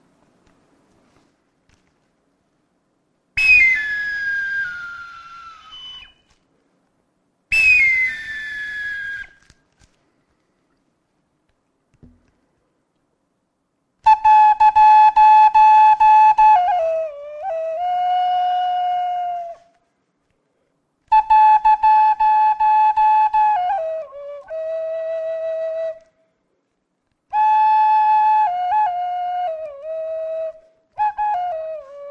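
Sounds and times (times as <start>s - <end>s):
solo flute melody: 3.4s - 6.4s, 7.5s - 9.6s, 14.0s - 20.0s, 21.1s - 26.3s, 27.3s - 32.1s.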